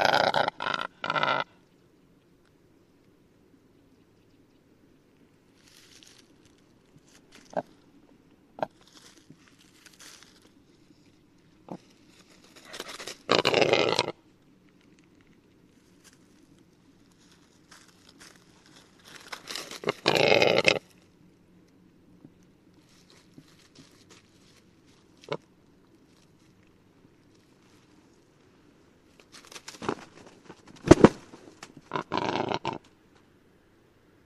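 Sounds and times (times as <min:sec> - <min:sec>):
rackelhahn black grouse capercaillie hybrid harsh rasping call: 0:00.0 - 0:01.6, 0:12.6 - 0:14.2, 0:19.4 - 0:21.0, 0:31.8 - 0:32.9
low background hiss: 0:00.0 - 0:34.2.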